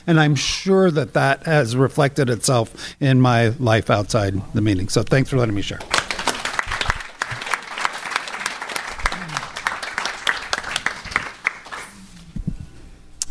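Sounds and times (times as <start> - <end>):
speech: 0.0 - 6.0
room full of people applauding: 5.8 - 12.2.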